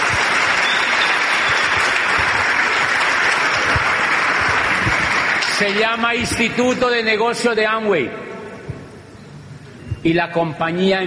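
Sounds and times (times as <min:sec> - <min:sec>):
audience applause: 0:00.0 - 0:06.2
speech: 0:05.6 - 0:08.2, 0:10.0 - 0:11.0.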